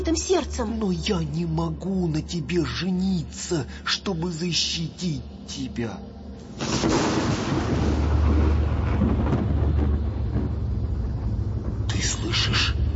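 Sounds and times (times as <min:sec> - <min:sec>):
speech: 0:00.0 - 0:07.1
thunder of an approaching storm: 0:06.5 - 0:12.9.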